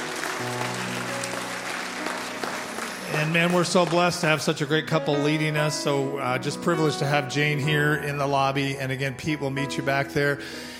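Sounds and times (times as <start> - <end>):
audience applause: 0.0 - 4.6
speech: 3.2 - 10.7.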